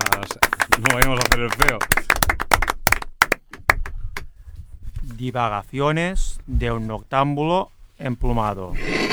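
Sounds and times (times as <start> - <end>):
audience applause: 0.0 - 3.8
speech: 0.8 - 2.0, 5.2 - 9.0.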